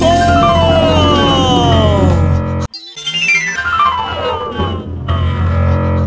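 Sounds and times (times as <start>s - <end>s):
siren: 0.1s - 6.0s.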